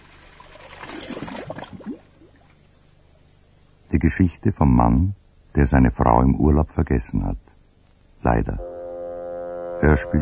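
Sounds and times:
sea water splashing as a person in cotton swimming trunks runs into the sea: 0:00.0 - 0:02.5
speech: 0:04.0 - 0:07.4, 0:08.2 - 0:08.7, 0:09.8 - 0:10.1.

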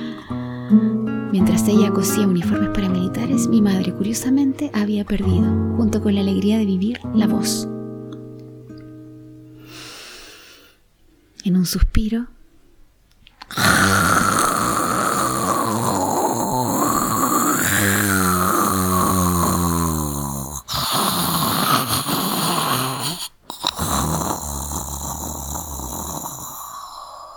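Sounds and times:
exhausted woman snoring slumped in a chair: 0:00.0 - 0:01.0, 0:13.5 - 0:27.3
speech: 0:00.7 - 0:07.8, 0:11.5 - 0:12.4.

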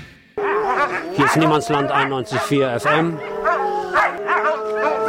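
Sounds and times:
several nervous dogs howling: 0:00.4 - 0:05.0
speech: 0:01.3 - 0:03.5.

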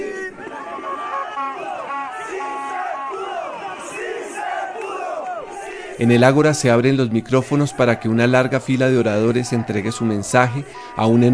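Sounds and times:
crowd celebrating and singing: 0:00.0 - 0:11.3
speech: 0:06.0 - 0:11.3.

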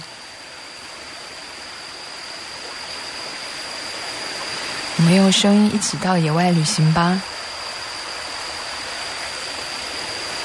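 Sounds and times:
flowing stream water in a valley: 0:00.0 - 0:10.4
thin constant high-pitched whine: 0:00.0 - 0:10.4
speech: 0:05.0 - 0:07.3.

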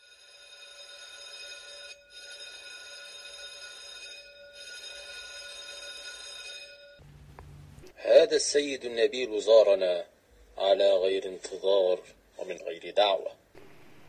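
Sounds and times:
electric call bell ringing: 0:00.0 - 0:07.0
speech: 0:08.0 - 0:13.4.

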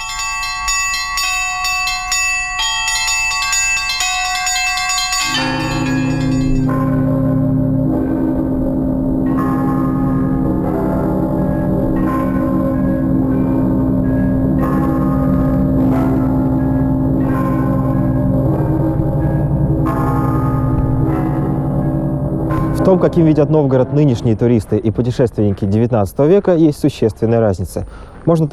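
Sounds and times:
church bell ensemble ringing: 0:00.0 - 0:25.3
speech: 0:22.9 - 0:28.5.

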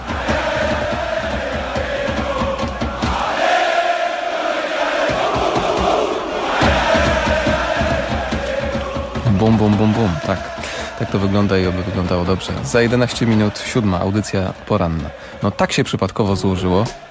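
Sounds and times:
football fans chanting: 0:00.0 - 0:17.0
speech: 0:09.4 - 0:17.0.

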